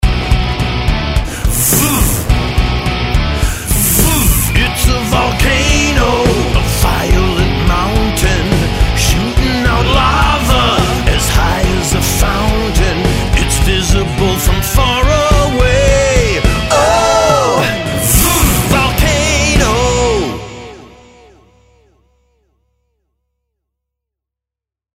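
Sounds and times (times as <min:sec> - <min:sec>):
song: 0:00.2 - 0:22.0.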